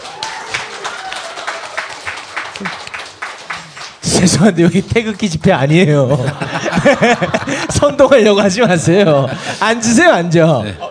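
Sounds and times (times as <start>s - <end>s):
audience applause: 0.0s - 5.2s
speech: 2.6s - 2.8s, 4.2s - 10.9s
laughter: 5.9s - 9.8s, 10.6s - 10.9s.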